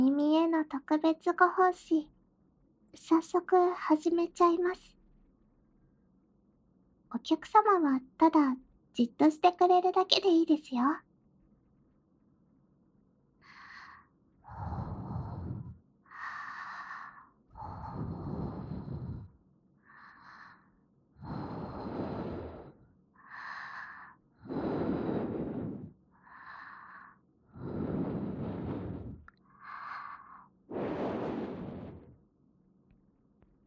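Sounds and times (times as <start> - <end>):
speech: 0.6 - 2.2, 2.9 - 4.9, 7.1 - 11.0
lighter hissy breath intakes: 23.7 - 32.2
soft airy breaths blown into the ear: 30.7 - 32.2.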